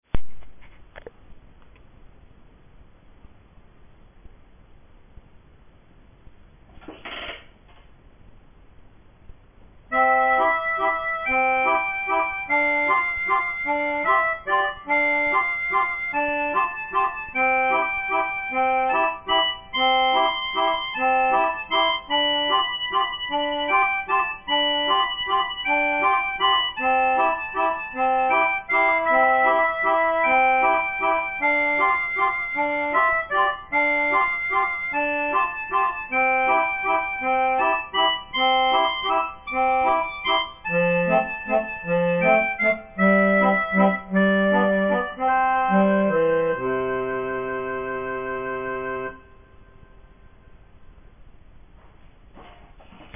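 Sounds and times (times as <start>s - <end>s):
keyboard playing: 9.9s - 49.8s.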